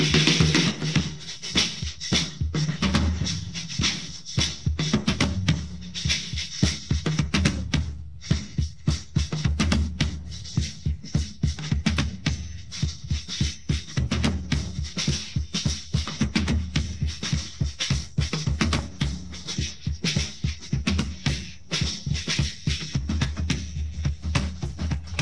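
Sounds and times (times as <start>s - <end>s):
drums: 0.0s - 25.2s.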